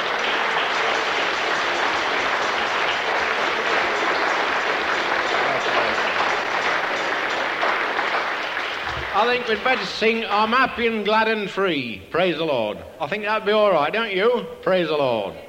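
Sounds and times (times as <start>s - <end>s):
audience clapping: 0.0s - 10.8s
speech: 9.2s - 15.4s.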